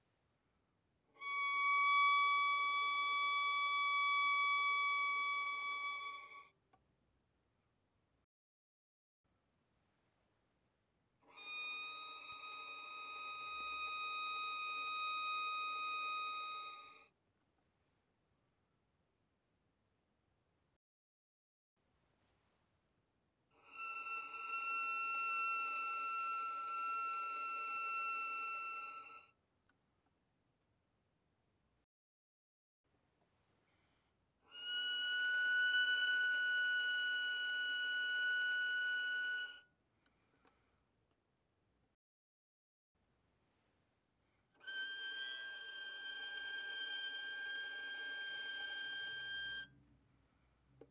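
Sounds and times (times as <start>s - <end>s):
violin arco mezzo forte on A string: 1.2s - 6.5s, 11.3s - 17.0s, 23.6s - 29.2s, 34.5s - 39.6s, 44.6s - 49.7s.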